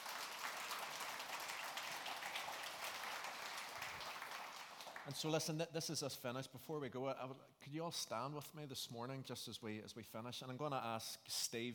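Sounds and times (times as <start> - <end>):
audience applause: 0.0 - 5.2
speech: 5.0 - 11.7.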